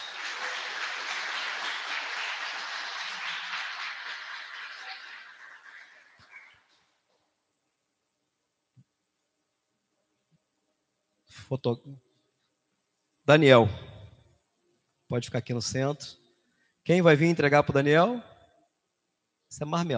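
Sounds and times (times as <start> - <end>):
audience applauding: 0.0 - 6.8
speech: 11.5 - 12.1, 13.3 - 13.9, 15.1 - 16.2, 16.8 - 18.3, 19.5 - 19.9.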